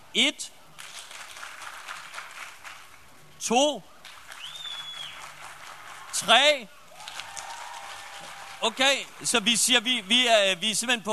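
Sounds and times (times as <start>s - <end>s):
speech: 0.2s - 0.6s, 3.4s - 3.9s, 6.2s - 6.8s, 8.6s - 11.1s
audience clapping to vote: 0.7s - 3.1s, 4.0s - 11.1s.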